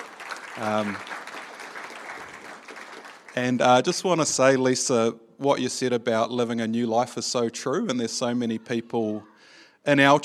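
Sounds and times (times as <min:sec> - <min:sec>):
audience clapping: 0:00.0 - 0:04.1
speech: 0:00.6 - 0:01.2, 0:03.4 - 0:10.2.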